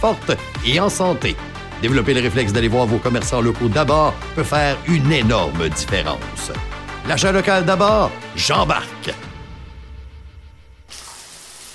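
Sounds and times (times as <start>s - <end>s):
speech: 0.0s - 9.3s
shower water running: 10.9s - 11.7s.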